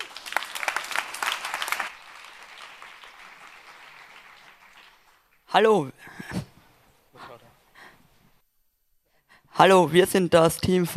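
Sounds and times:
audience applause: 0:00.0 - 0:05.4
speech: 0:05.5 - 0:06.3, 0:09.6 - 0:10.9.

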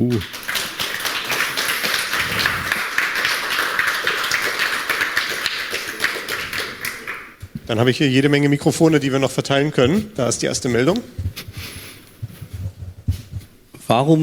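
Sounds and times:
speech: 0:00.0 - 0:00.5, 0:07.7 - 0:11.3, 0:13.9 - 0:14.2
audience applause for a speaker: 0:00.0 - 0:08.2.

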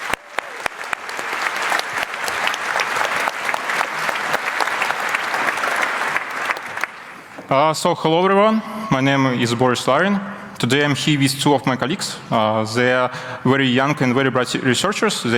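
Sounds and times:
audience applause: 0:00.0 - 0:07.4
speech: 0:07.5 - 0:15.3.

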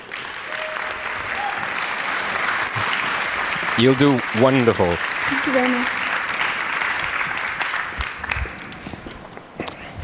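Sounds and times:
audience applause: 0:00.0 - 0:09.1
speech: 0:03.8 - 0:06.0.

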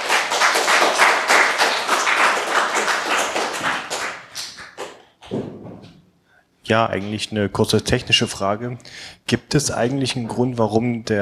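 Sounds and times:
audience applause: 0:00.0 - 0:05.0
speech: 0:06.7 - 0:11.1.

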